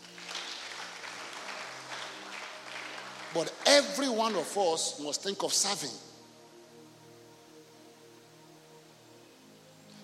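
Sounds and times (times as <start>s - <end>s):
audience clapping: 0.0s - 4.8s
speech: 3.3s - 6.1s.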